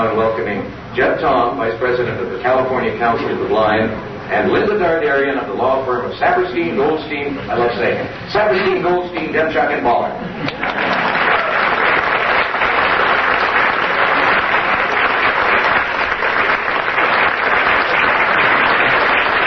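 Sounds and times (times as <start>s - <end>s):
speech: 0.4s - 10.8s
audience clapping: 10.4s - 19.4s.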